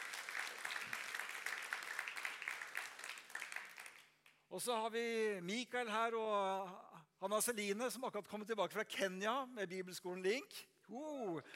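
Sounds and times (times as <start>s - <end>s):
audience applause: 0.0s - 4.1s
speech: 4.5s - 11.5s.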